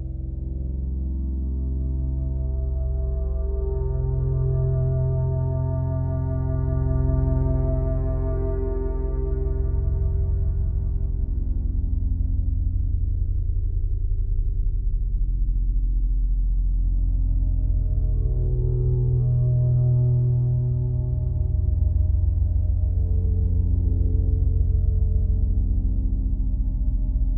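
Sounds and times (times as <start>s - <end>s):
less dark ambient horror music loop: 0.0s - 27.3s.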